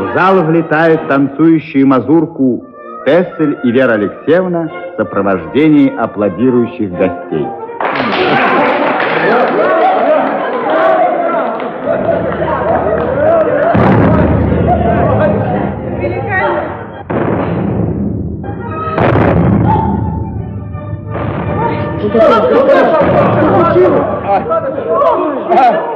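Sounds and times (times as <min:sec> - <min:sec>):
speech: 0:00.2 - 0:08.4
voices and commotion: 0:07.8 - 0:17.1, 0:21.4 - 0:25.9
artillery salute cannon fire: 0:13.7 - 0:14.9, 0:17.1 - 0:20.2, 0:21.1 - 0:21.8, 0:23.0 - 0:23.7.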